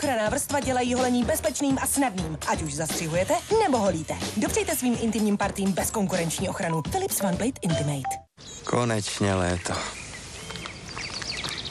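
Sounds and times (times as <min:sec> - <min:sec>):
speech: 0:00.0 - 0:10.0
birds singing: 0:08.4 - 0:11.6.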